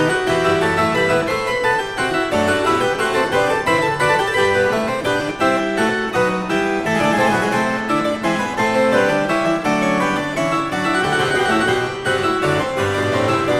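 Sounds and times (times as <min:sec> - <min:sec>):
harpsichord overture variation for one keyboard: 0:00.0 - 0:13.5.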